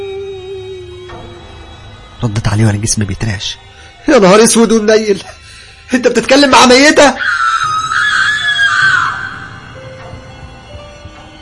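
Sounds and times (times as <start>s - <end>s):
speech: 2.2s - 5.3s, 5.9s - 7.3s
woman screaming: 7.0s - 9.5s.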